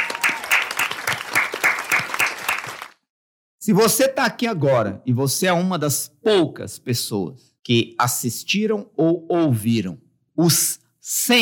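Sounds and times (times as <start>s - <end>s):
round of applause: 0.0s - 3.1s
speech: 3.7s - 11.4s.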